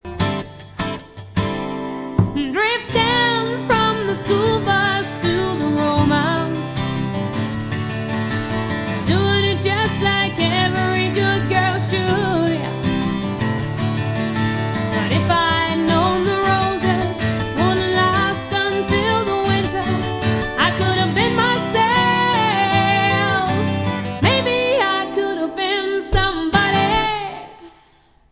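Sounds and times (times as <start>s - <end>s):
acoustic music: 0.0s - 28.1s.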